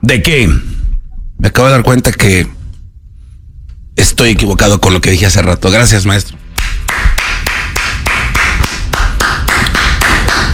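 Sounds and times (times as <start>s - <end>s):
speech: 0.0s - 0.7s, 1.4s - 2.6s, 4.0s - 6.4s
low rumbling background: 0.0s - 10.5s
person clapping hands: 6.6s - 10.5s.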